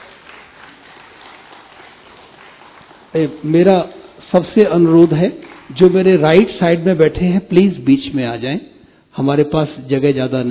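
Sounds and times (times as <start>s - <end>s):
audience applause: 0.0s - 4.2s
speech: 3.1s - 10.5s.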